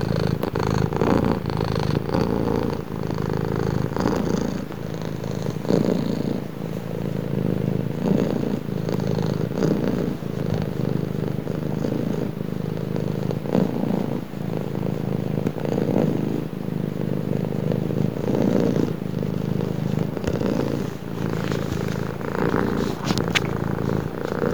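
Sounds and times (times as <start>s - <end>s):
cat purring: 0.0s - 24.5s
faint clicks and rustles: 19.6s - 24.5s.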